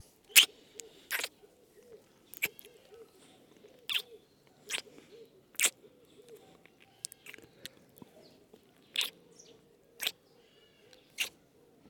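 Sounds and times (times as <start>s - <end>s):
kissing: 0.3s - 0.5s, 1.1s - 1.3s, 2.4s - 2.7s, 3.9s - 4.1s, 4.7s - 4.9s, 5.6s - 7.8s, 8.9s - 9.2s, 10.0s - 10.2s, 11.2s - 11.4s.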